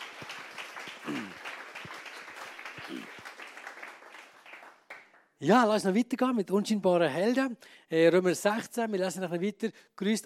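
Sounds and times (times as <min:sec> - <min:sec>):
audience applause: 0:00.0 - 0:05.2
speech: 0:05.4 - 0:10.2.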